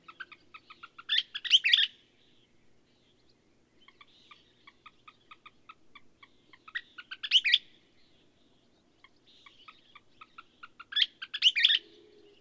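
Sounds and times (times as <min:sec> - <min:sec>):
bird song with short chipping notes and twittering flourishes: 0:00.0 - 0:12.3.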